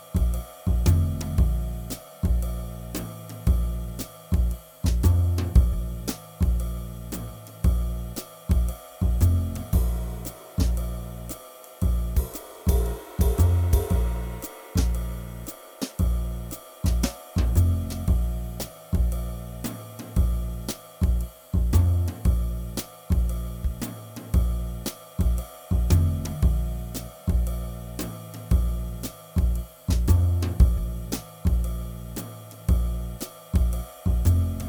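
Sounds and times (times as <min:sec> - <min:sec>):
jazz swing drone in B flat at 115 BPM: 0:00.0 - 0:34.6.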